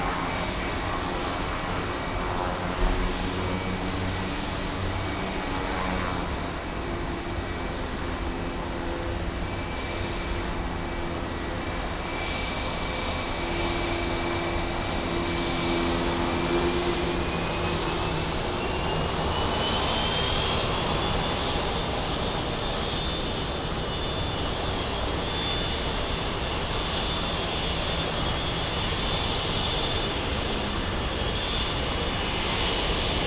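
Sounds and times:
airplane turbine engines: 0.0 - 33.2.

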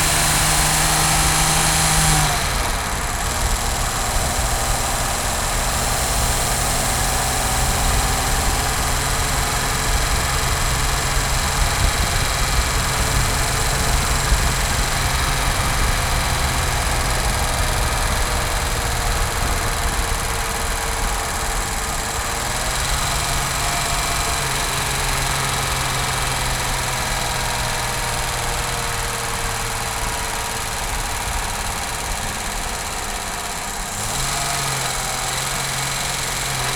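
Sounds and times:
Jaguar E-Type car engine driving: 0.0 - 36.7.

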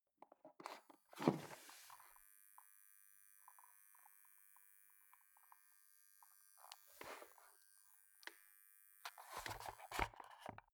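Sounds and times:
foot switch dimmer buzz: 1.3 - 10.0.

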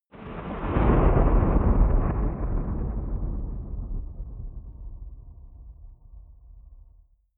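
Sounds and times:
digital thunder: 0.1 - 6.6.

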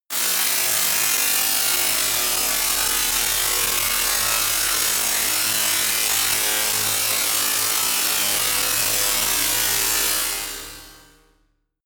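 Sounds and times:
buzz saw: 0.1 - 10.8.

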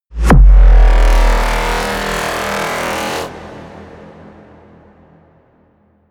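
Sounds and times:
metal explosion blasts and hits: 0.2 - 2.2.

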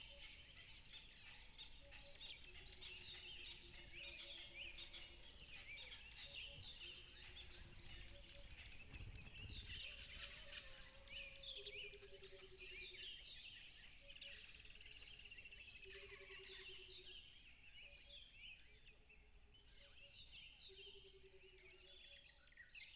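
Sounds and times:
cricket chorus: 0.0 - 22.8
birds chirping: 4.8 - 11.1.

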